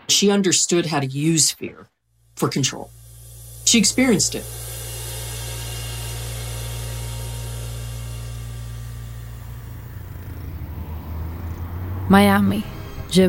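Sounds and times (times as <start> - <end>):
speech: 0.1 - 3.0, 3.7 - 4.7, 12.1 - 13.2
convoy of vehicles rolling over the Key Biscayne highway bridge: 2.8 - 13.2.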